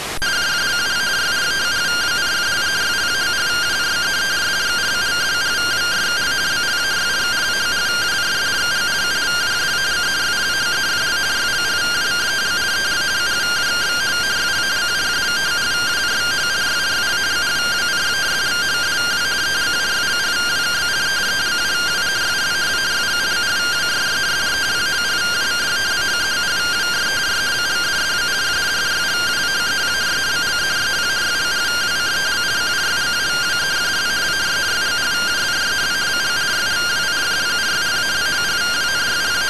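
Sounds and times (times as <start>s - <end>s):
received RTTY radioteletype signal: 0.1s - 39.4s.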